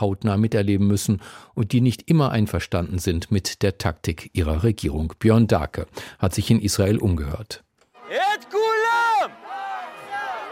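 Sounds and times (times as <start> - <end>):
speech: 0.0 - 8.6
protest crowd shouting in response: 8.0 - 10.4.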